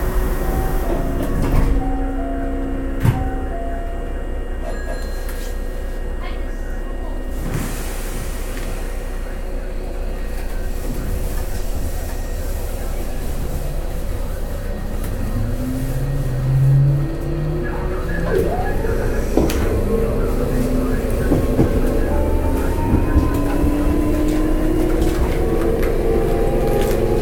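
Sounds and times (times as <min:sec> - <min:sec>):
Hankyu 7000 series train running on the Kobe Line local: 0:00.0 - 0:27.2.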